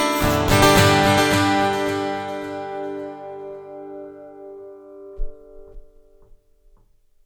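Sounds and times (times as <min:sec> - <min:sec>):
delay effect: 0:00.1 - 0:03.7.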